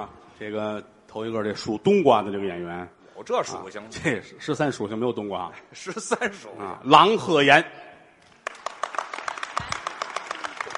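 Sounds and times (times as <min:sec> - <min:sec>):
speech: 0:00.0 - 0:07.8
audience applause: 0:08.3 - 0:10.7.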